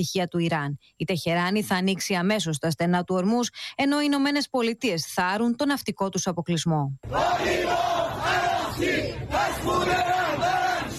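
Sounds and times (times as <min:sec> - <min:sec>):
speech: 0:00.0 - 0:10.1
protesters chanting slogans in street: 0:07.0 - 0:10.9.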